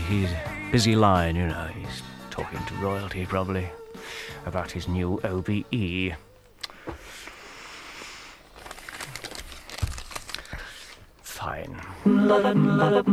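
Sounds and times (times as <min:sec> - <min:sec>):
speech: 0:00.1 - 0:06.3, 0:11.4 - 0:13.1
newspaper pages rustling: 0:02.4 - 0:12.0.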